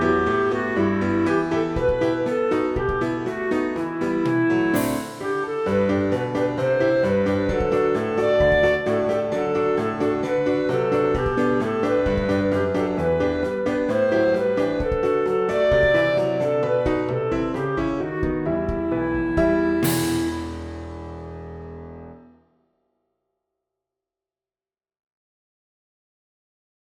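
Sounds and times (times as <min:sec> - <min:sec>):
clarinet: 0:00.0 - 0:21.1
piano: 0:00.0 - 0:22.6.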